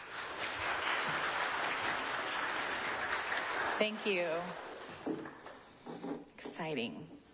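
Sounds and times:
audience applause welcoming a speaker: 0:00.0 - 0:05.6
speech: 0:03.8 - 0:05.4, 0:06.6 - 0:07.2.

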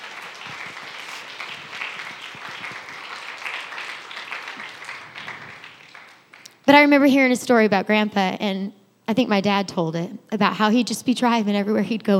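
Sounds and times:
audience hand clapping: 0:00.0 - 0:06.6
speech: 0:06.7 - 0:12.1.

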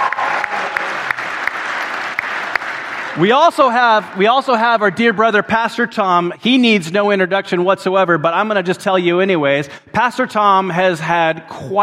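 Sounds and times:
crowd applauding: 0:00.0 - 0:04.9
speech: 0:03.2 - 0:11.8.

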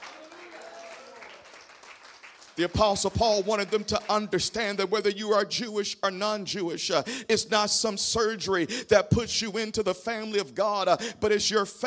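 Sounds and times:
audience clapping hands and shouting: 0:00.0 - 0:04.5
speech: 0:02.6 - 0:11.8.

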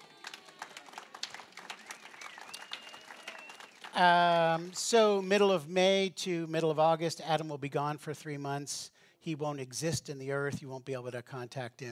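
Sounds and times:
audience applause: 0:00.0 - 0:04.8
speech: 0:04.0 - 0:11.9.

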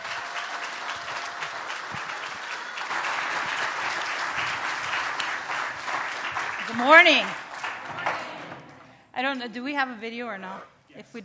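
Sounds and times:
church congregation applauding a guest speaker at a morning service: 0:00.0 - 0:09.0
speech: 0:06.7 - 0:07.4, 0:09.2 - 0:11.2.

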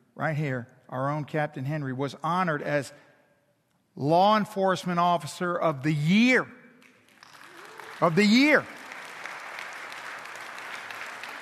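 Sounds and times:
speech: 0:00.2 - 0:03.1, 0:04.0 - 0:06.6, 0:08.0 - 0:08.8
audience applause: 0:07.1 - 0:11.3.

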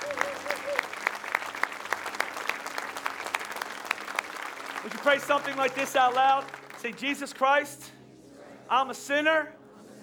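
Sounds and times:
audience clapping: 0:00.0 - 0:07.5
speech: 0:04.8 - 0:08.0, 0:08.7 - 0:09.6.

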